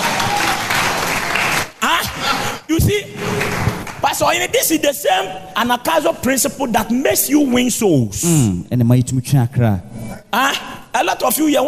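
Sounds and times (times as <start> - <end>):
audience clapping: 0.0 - 4.5
speech: 1.8 - 11.6.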